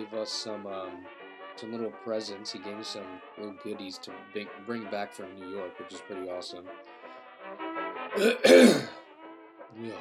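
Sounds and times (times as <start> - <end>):
speech: 0.0 - 9.0, 9.7 - 10.0
raspy gravelly throat clearing: 8.2 - 9.0.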